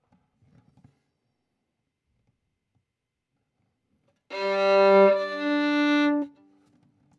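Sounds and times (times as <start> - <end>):
violin: 4.3 - 6.4.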